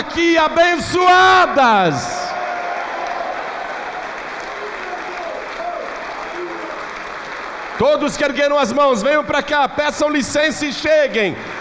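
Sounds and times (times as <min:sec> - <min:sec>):
speech: 0:00.2 - 0:02.2, 0:07.8 - 0:11.5
audience applauding: 0:02.2 - 0:09.3, 0:10.6 - 0:11.6.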